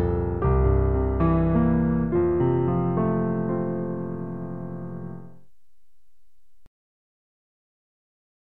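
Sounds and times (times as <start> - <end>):
piano: 0.0 - 6.7.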